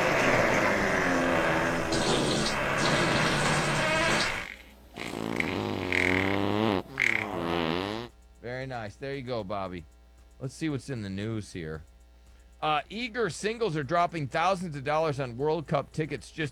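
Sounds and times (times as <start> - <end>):
fart sound effect: 0.0 - 8.1
speech: 8.7 - 11.9, 12.6 - 16.5.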